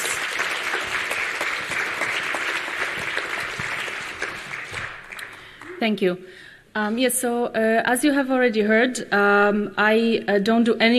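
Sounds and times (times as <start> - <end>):
audience applause: 0.0 - 5.8
speech: 5.8 - 10.9.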